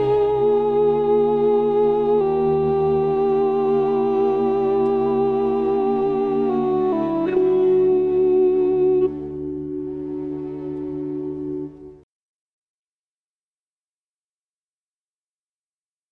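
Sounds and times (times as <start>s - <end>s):
soprano singing: 0.0s - 12.0s.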